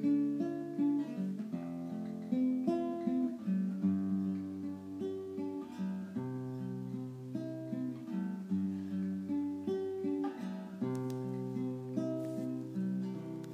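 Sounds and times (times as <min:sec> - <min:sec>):
guitar playing relaxation music: 0:00.0 - 0:13.5.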